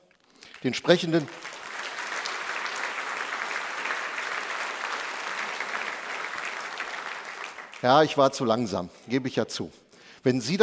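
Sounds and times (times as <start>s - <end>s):
audience applause: 0.4s - 8.4s
speech: 0.6s - 1.5s, 7.8s - 10.6s.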